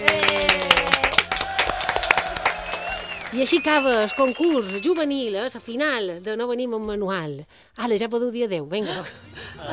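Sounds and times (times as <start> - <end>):
audience applause: 0.0 - 5.0
speech: 3.3 - 9.7.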